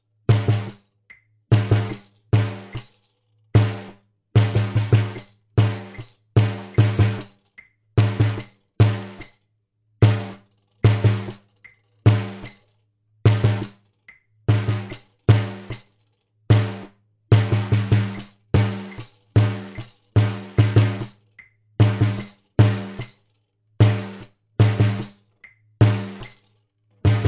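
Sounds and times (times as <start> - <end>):
bass: 0.0 - 2.8, 3.5 - 9.2, 10.0 - 11.4, 12.0 - 12.5, 13.2 - 13.8, 14.5 - 15.8, 16.5 - 23.1, 23.8 - 26.3, 27.0 - 27.2.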